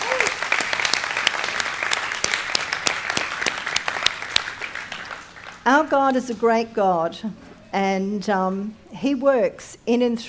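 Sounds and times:
crowd clapping: 0.0 - 5.8
speech: 5.7 - 10.2.

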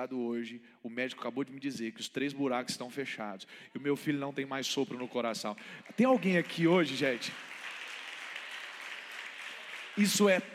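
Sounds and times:
speech: 0.0 - 7.6, 10.0 - 10.5
audience applause: 4.9 - 10.5.

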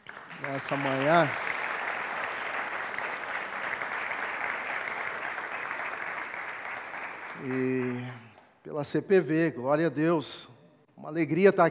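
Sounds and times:
audience applauding: 0.0 - 8.4
speech: 0.4 - 1.5, 7.4 - 11.6.

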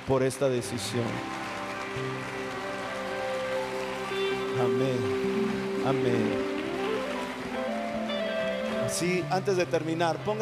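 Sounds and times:
audience applauding: 0.0 - 10.3
speech: 0.1 - 2.6, 4.6 - 6.6, 8.9 - 10.3
sustained musical tones: 0.6 - 10.3.

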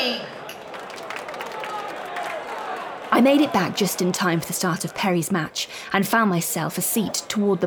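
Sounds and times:
crowd ovation at tennis court: 0.2 - 5.1
speech: 3.2 - 7.6.

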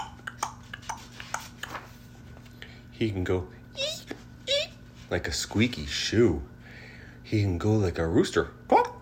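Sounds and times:
voice imitating horse hooves clopping with tongue clicks: 0.0 - 1.8
speech: 3.0 - 3.6, 5.1 - 6.5, 7.3 - 8.8.

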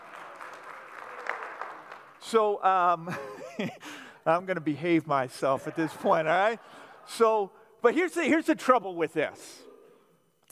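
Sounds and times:
crowd applauding for newlywed couple: 0.0 - 2.2
speech: 2.3 - 9.7
laughter: 3.0 - 3.9, 5.4 - 7.5.

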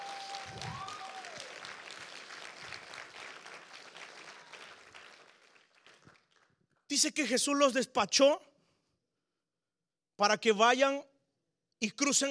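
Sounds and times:
audience applauding: 0.0 - 6.6
speech: 7.0 - 8.5, 10.2 - 11.1, 11.8 - 12.2.

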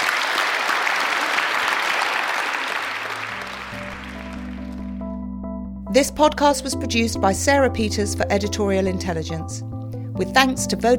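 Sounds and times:
audience applause: 0.0 - 5.1
speech: 6.0 - 10.9.

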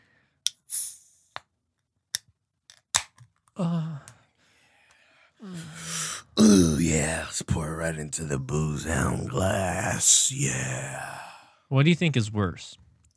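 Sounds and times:
beer can being cracked open: 2.7 - 3.4
speech: 3.6 - 3.8, 7.0 - 12.8.

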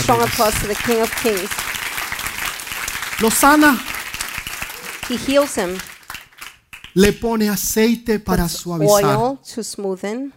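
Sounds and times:
loud crowd applause: 0.0 - 7.2
speech: 0.1 - 1.6, 3.2 - 3.9, 5.1 - 5.9, 6.9 - 10.3.

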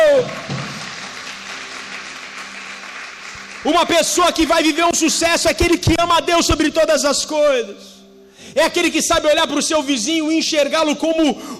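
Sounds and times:
audience applause: 0.0 - 4.6
speech: 3.7 - 11.5.

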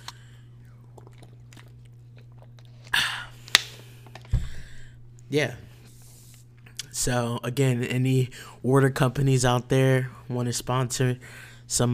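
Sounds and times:
water bottle cracking open: 3.4 - 4.4
speech: 5.3 - 5.7, 7.0 - 11.9.

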